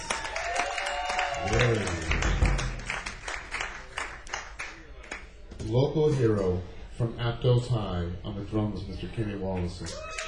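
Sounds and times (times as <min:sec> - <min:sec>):
audience applauding: 0:00.0 - 0:05.2
person whooping: 0:00.3 - 0:02.5
speech: 0:05.7 - 0:10.2.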